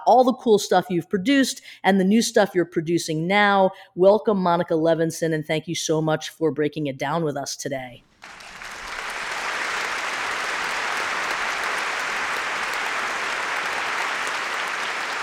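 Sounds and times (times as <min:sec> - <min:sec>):
speech: 0:00.0 - 0:08.4
studio audience applause: 0:08.2 - 0:15.2.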